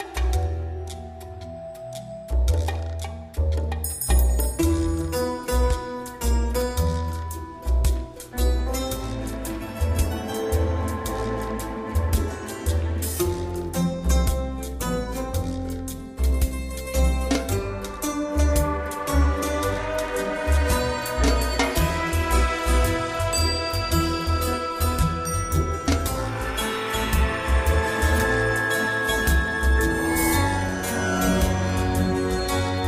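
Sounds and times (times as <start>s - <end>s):
instrumental TV theme music with plucked and percussive notes: 0.0s - 32.8s.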